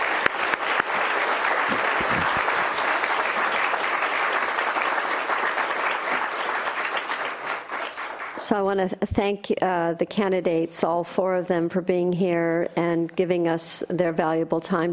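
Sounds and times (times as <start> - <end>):
audience applause: 0.0 - 8.4
speech: 8.5 - 14.9.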